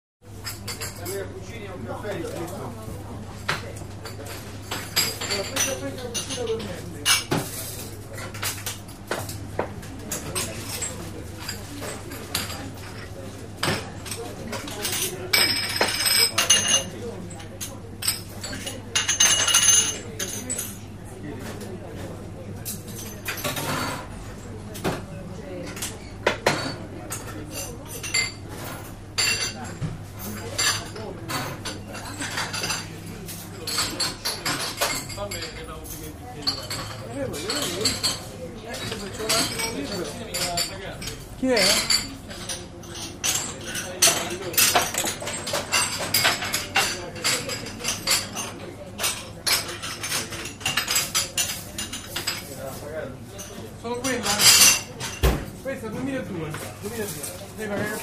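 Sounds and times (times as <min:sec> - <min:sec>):
restaurant ambience in Rome Italy: 0:00.2 - 0:58.0.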